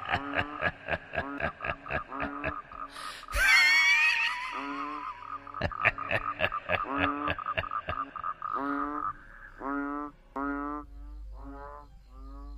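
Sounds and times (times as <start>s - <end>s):
person chuckling: 0.0s - 8.2s
frogs croaking by a pond beside a cemetery: 0.0s - 12.5s.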